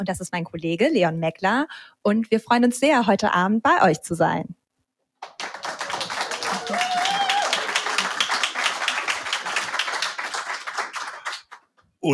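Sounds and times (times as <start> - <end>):
speech: 0.0 - 4.6
live audience applause in a hall: 5.2 - 11.7.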